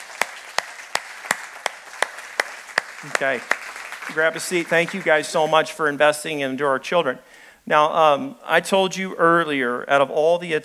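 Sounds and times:
audience applause: 0.0s - 5.6s
speech: 3.0s - 10.6s.

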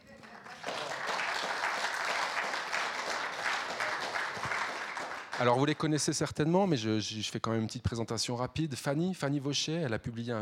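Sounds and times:
audience applause: 0.0s - 5.8s
speech: 5.4s - 10.4s.

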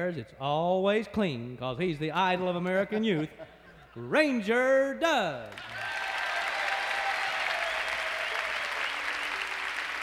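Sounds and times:
speech: 0.0s - 5.9s
audience applause: 5.5s - 10.0s.

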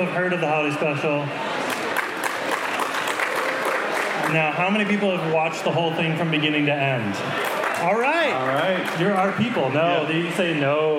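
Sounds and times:
speech: 0.0s - 1.5s, 4.2s - 10.9s
audience applause: 1.6s - 5.1s, 7.4s - 9.8s.

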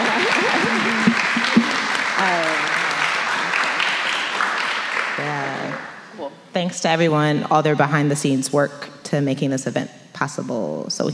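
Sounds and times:
laughter: 0.0s - 4.1s
crowd clapping: 0.0s - 6.1s
speech: 6.6s - 11.1s.

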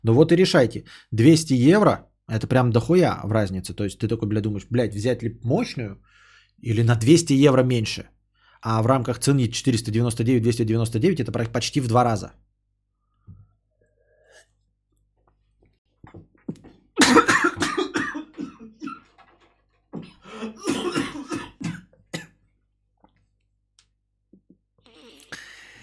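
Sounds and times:
speech: 0.0s - 12.5s, 17.0s - 17.4s
person coughing after water went down the wrong way: 17.0s - 19.2s, 20.2s - 22.4s.

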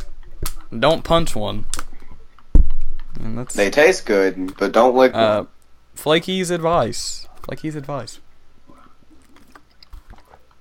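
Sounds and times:
speech: 0.7s - 1.9s, 3.2s - 8.2s
person drinking water: 8.6s - 10.5s.

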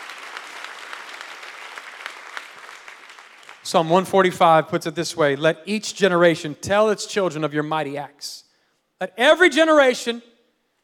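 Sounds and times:
audience clapping hands: 0.0s - 4.1s
speech: 3.6s - 8.4s, 9.0s - 10.3s.

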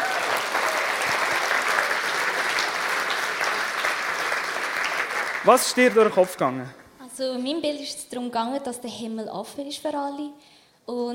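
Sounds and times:
audience applause: 0.0s - 6.7s
speech: 5.4s - 11.1s.

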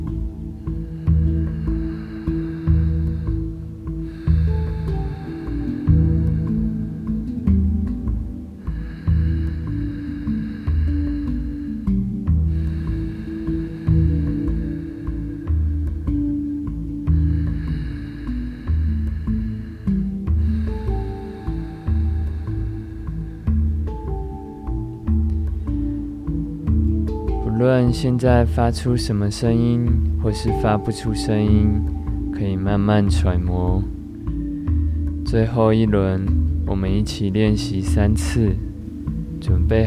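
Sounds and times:
ujjayi ocean breathing with relaxed throat: 0.0s - 27.9s, 31.8s - 32.4s, 33.8s - 35.3s, 38.6s - 39.5s
continuous low humming musical background: 0.0s - 39.8s
speech: 27.8s - 34.0s, 35.3s - 38.7s, 39.4s - 39.8s.

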